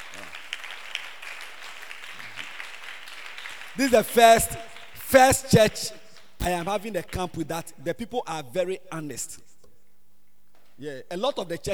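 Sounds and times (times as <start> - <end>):
crowd applauding: 0.0 - 5.6
speech: 3.8 - 9.5, 10.8 - 11.7.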